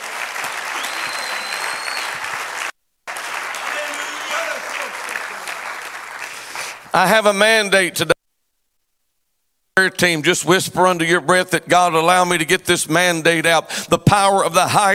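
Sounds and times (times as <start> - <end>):
crowd clapping: 0.0 - 7.4
scattered voices and cheers: 3.6 - 5.2
speech: 6.9 - 8.1, 9.8 - 14.9.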